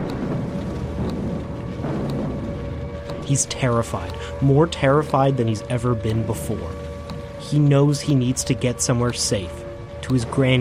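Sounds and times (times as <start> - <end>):
distant bombs crashing: 0.0 - 3.4
air raid sirens blaring: 0.0 - 10.5
planes whirring and clanging in the sky: 0.0 - 10.5
speech: 3.3 - 6.9, 7.5 - 10.5.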